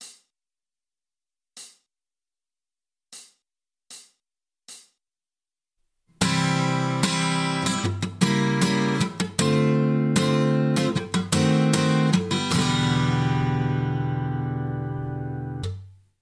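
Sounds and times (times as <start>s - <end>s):
guitar: 6.1s - 16.0s.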